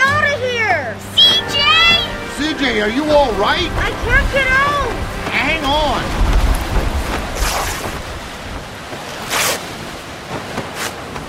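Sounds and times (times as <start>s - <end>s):
waves: 0.0s - 11.2s
storm wind: 1.4s - 11.2s
speech: 2.7s - 6.2s.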